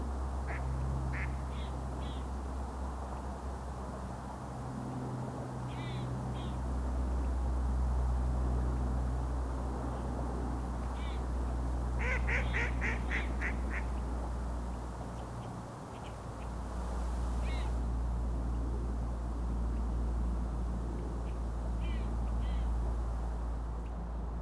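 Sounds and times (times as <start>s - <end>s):
steady low traffic rumble: 0.0s - 24.4s
mallard quacking: 12.0s - 13.9s.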